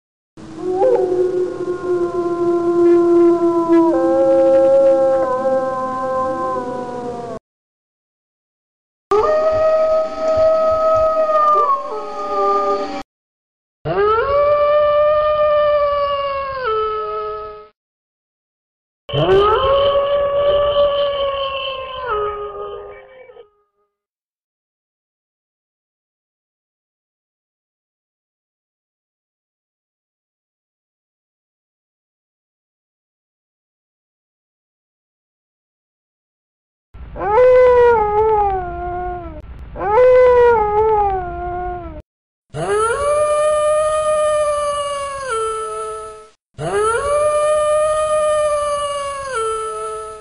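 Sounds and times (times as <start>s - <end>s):
wolf howling: 0.5s - 7.4s, 9.1s - 13.0s, 13.9s - 17.7s, 19.1s - 23.5s, 37.2s - 42.0s, 42.6s - 50.1s.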